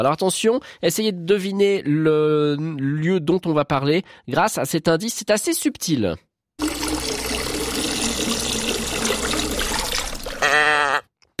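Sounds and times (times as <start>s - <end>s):
speech: 0.0s - 6.7s
water trickling: 6.6s - 10.5s.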